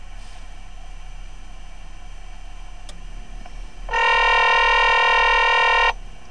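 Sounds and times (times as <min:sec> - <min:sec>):
telephone: 0:03.9 - 0:06.0.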